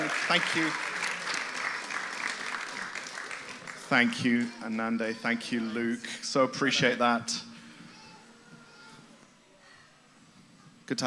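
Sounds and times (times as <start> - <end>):
audience applause: 0.0 - 4.6
speech: 0.3 - 0.9, 3.9 - 7.4, 10.9 - 11.0.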